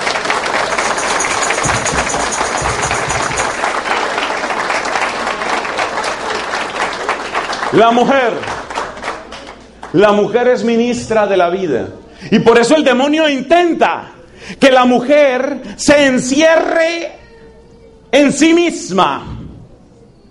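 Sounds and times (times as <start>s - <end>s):
audience applause: 0.0s - 10.0s
speech: 7.7s - 8.6s, 9.9s - 17.2s, 18.1s - 19.3s.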